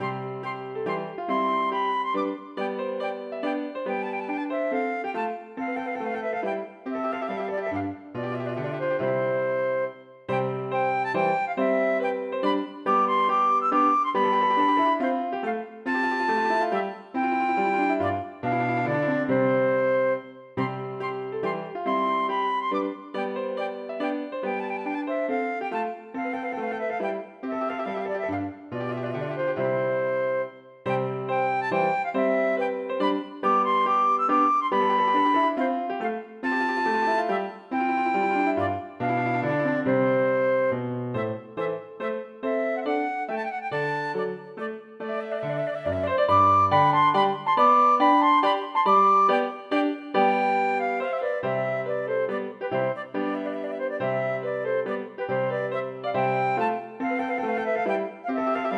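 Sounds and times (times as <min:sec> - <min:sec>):
minuet for flute and piano: 0:00.0 - 0:58.7.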